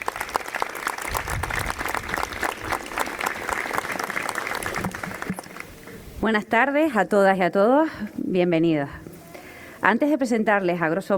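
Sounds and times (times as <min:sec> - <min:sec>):
crowd clapping: 0:00.0 - 0:05.7
speech: 0:06.2 - 0:09.0, 0:09.8 - 0:11.1.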